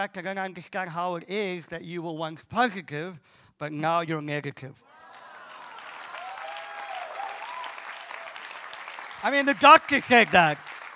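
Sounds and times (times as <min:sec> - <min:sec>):
speech: 0:00.0 - 0:04.9, 0:09.2 - 0:10.7
voices whooping and shouting: 0:04.9 - 0:08.4
crowd applause: 0:05.1 - 0:10.9.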